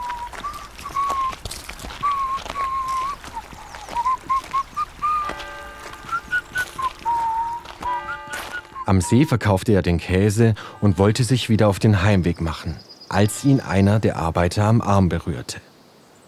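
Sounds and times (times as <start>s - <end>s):
cheerful whistling while walking downhill: 0.0s - 1.4s, 2.0s - 9.3s
footsteps tapping: 0.0s - 9.0s
outdoor background: 0.0s - 16.2s
speech: 8.9s - 15.7s.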